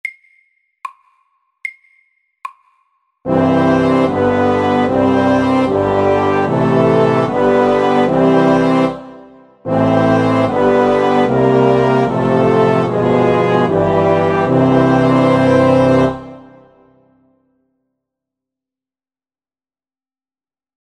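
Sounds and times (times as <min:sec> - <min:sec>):
chromatic chorale: 0:03.3 - 0:17.0.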